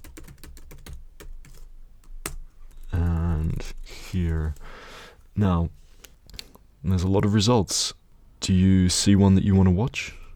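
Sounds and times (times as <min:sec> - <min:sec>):
typing on a computer keyboard: 0:00.0 - 0:04.6
speech: 0:04.1 - 0:04.8, 0:05.4 - 0:05.8, 0:06.8 - 0:10.2.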